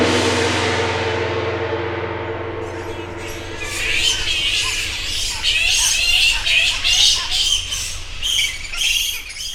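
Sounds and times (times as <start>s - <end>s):
gong: 0.0s - 8.7s
bat sounds: 2.3s - 9.5s.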